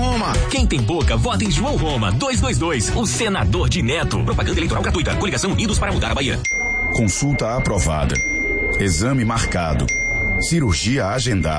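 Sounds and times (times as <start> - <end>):
speech: 0.2 - 11.5
bell ding sound effect in a Brazilian political radio ad: 6.4 - 11.5.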